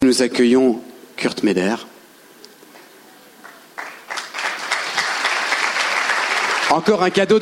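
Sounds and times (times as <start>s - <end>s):
speech: 0.1s - 1.9s, 6.7s - 7.4s
audience applause: 3.4s - 7.4s.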